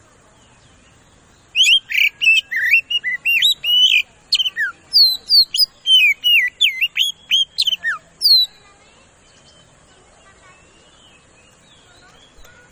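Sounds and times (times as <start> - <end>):
Oriental magpie-robin singing fast loud whistled lure song: 1.5 - 8.6.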